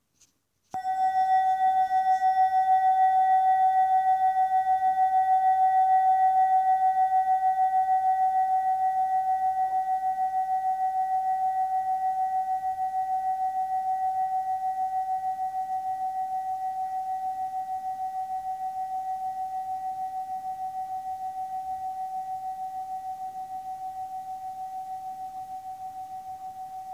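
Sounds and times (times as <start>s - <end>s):
singing bowls: 0.8s - 26.9s.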